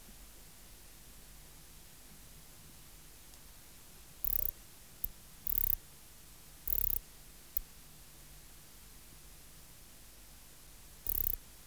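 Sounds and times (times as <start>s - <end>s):
Ancistrura nigrovittata bush-cricket stridulation: 4.2s - 4.5s, 5.4s - 5.8s, 6.7s - 7.0s, 11.0s - 11.4s.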